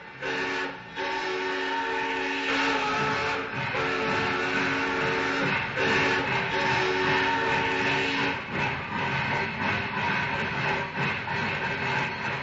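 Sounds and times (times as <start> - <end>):
steam train long multi-tone whistle: 0.0 - 8.5
steam train pulling out of station, hissing steam and rumbling: 0.0 - 12.4.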